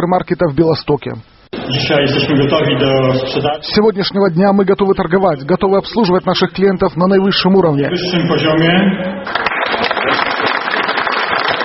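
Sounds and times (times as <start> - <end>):
speech: 0.0 - 10.2
crowd applause: 9.2 - 11.6.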